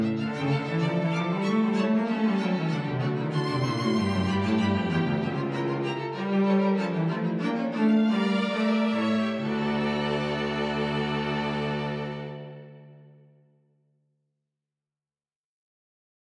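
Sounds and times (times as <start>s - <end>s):
concerto for two violins: 0.0s - 12.9s.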